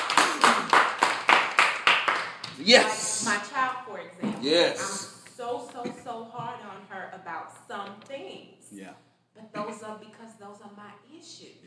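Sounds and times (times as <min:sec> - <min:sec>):
rhythmic audience clapping: 0:00.0 - 0:03.3
speech: 0:02.6 - 0:11.6.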